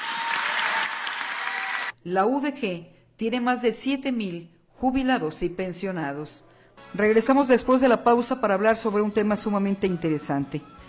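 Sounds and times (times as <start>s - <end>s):
audience applause: 0.0s - 1.9s
speech: 2.0s - 10.8s.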